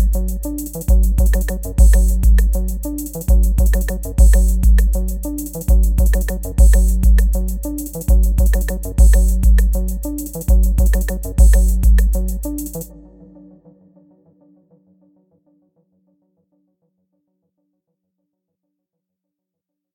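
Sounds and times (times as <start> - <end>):
808 kick drums: 0.0 - 0.3, 0.9 - 2.7, 3.3 - 5.0, 5.7 - 7.4, 8.1 - 9.8, 10.5 - 12.3.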